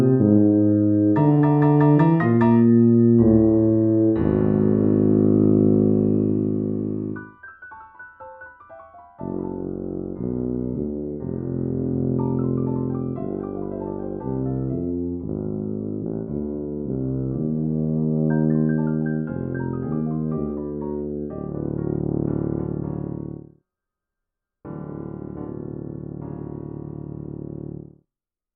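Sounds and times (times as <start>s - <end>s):
tuba playing a dirge: 0.0s - 7.3s, 9.2s - 23.4s.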